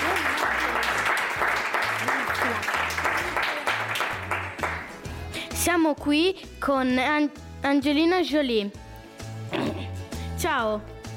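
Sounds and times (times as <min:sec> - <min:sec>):
audience applause: 0:00.0 - 0:05.0
speech: 0:05.7 - 0:08.8, 0:10.4 - 0:11.0.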